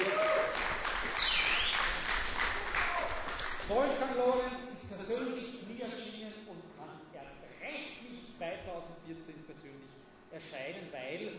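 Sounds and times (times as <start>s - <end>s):
audience applause for a chairman at a prize presentation: 0.0s - 4.2s
speech: 3.7s - 11.3s.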